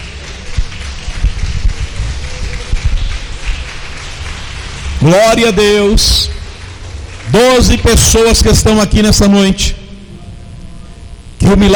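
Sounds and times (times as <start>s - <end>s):
audience clapping hands: 0.0s - 9.2s
speech: 5.0s - 6.4s, 7.3s - 9.8s, 11.5s - 11.7s.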